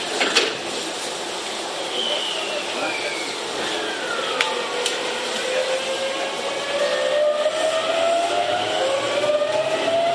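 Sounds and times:
Tokyu 7700 series train running between Kamata and Gotanda: 0.0 - 10.1.

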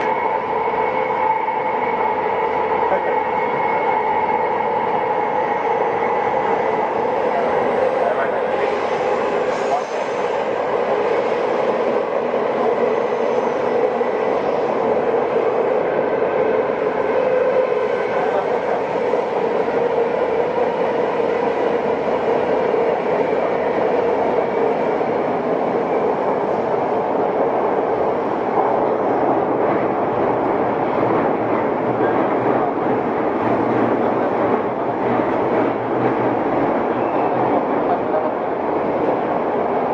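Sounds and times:
Tokyo Metro 05 series subway train running: 0.0 - 39.9.

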